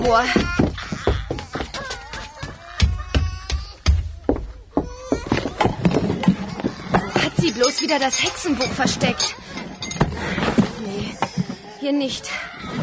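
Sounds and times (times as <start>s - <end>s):
speech: 0.0s - 0.6s, 7.8s - 9.5s, 11.8s - 12.8s
babies crying: 0.1s - 10.0s, 10.9s - 12.8s
steady clatter of sharp knocks and taps: 0.3s - 7.5s.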